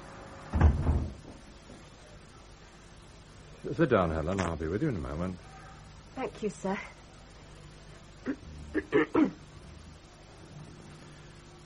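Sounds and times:
door pushed shut: 0:00.5 - 0:01.4
speech: 0:03.6 - 0:05.5, 0:06.2 - 0:07.0.

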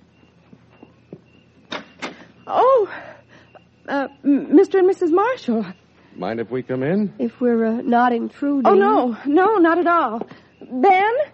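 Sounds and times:
door opening: 0:00.8 - 0:02.3
soft latch clicks and creaks: 0:01.6 - 0:02.3
speech: 0:02.5 - 0:03.2, 0:03.9 - 0:11.3.

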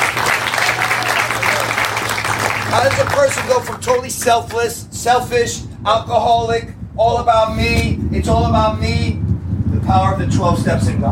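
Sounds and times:
audience applause during a talk: 0:00.0 - 0:04.0
speech: 0:02.7 - 0:09.2, 0:09.9 - 0:11.1.

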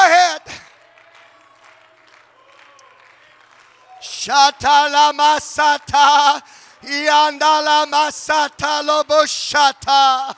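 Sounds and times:
audience clapping: 0:00.0 - 0:06.7
speech: 0:04.2 - 0:10.3.

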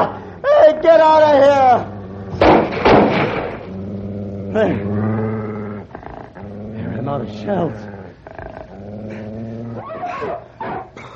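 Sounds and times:
wolves growling: 0:00.0 - 0:11.1
speech: 0:00.8 - 0:01.9, 0:07.3 - 0:07.9.

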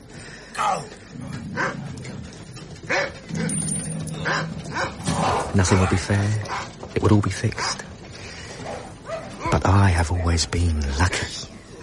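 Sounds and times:
speech: 0:00.6 - 0:01.8, 0:05.6 - 0:07.9, 0:09.5 - 0:11.4
rumbling murmuring background: 0:00.6 - 0:11.8
dogs barking at a dogfight: 0:01.2 - 0:07.0, 0:08.5 - 0:10.8.

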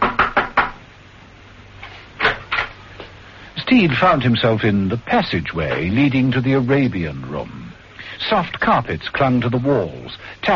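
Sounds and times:
knocking on a door: 0:00.0 - 0:00.8
speech: 0:03.7 - 0:07.6, 0:08.2 - 0:10.5.

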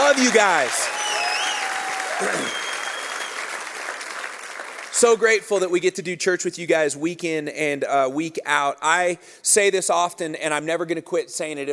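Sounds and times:
large crowd applauding: 0:00.0 - 0:05.4
speech: 0:00.2 - 0:01.0, 0:02.2 - 0:02.6, 0:05.0 - 0:11.7.

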